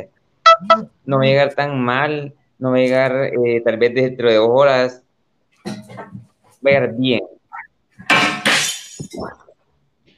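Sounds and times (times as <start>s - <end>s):
speech: 0.0s - 5.0s, 5.6s - 7.4s, 9.1s - 9.4s
plates dropping and breaking: 5.6s - 6.3s, 8.0s - 9.5s.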